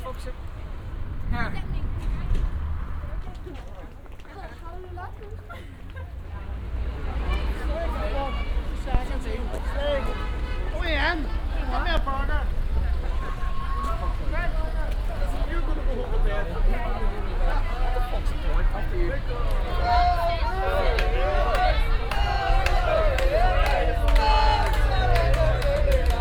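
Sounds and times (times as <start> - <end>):
city streets at night in Belfast: 0.0 - 26.2.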